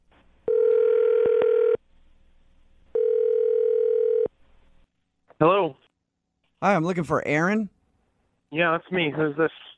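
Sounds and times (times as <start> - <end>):
telephone ringing: 0.5 - 1.8, 3.0 - 4.3
speech: 6.7 - 7.8, 8.5 - 9.6.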